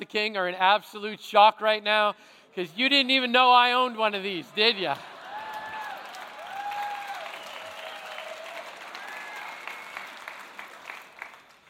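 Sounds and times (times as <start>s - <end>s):
speech: 0.0s - 5.1s
audience applause: 5.0s - 11.6s
whoops and cheers: 5.2s - 10.4s.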